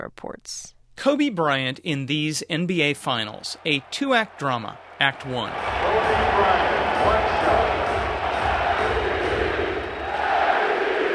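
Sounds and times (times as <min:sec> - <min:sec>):
speech: 0:00.0 - 0:07.8
home crowd chanting MVP: 0:04.8 - 0:11.1.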